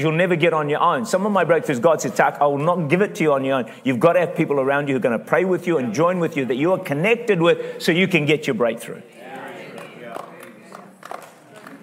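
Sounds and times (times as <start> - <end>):
speech: 0.0 - 9.2
a few people clapping: 9.2 - 11.8.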